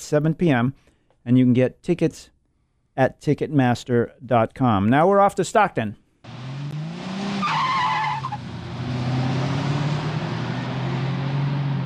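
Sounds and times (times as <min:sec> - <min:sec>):
speech: 0:00.1 - 0:02.4, 0:03.0 - 0:06.0
sprint car tires burning rubber on a dirt track: 0:06.3 - 0:11.8.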